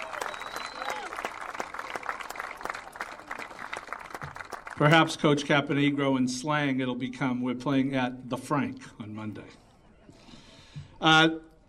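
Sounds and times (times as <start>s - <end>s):
whoop: 0.0s - 1.2s
crowd applause: 0.0s - 5.0s
speech: 4.8s - 9.6s, 11.0s - 11.5s.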